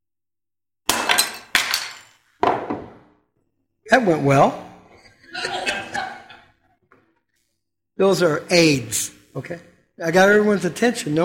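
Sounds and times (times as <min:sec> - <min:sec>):
clay pots breaking: 0:00.9 - 0:03.2
speech: 0:03.9 - 0:04.7, 0:08.0 - 0:11.2
laughter: 0:04.9 - 0:06.8.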